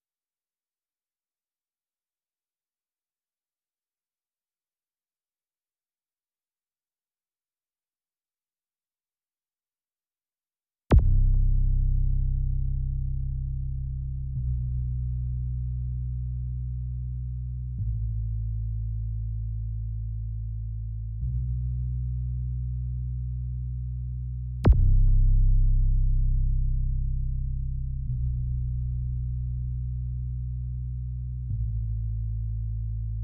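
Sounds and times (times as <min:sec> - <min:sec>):
bass: 0:10.9 - 0:33.2.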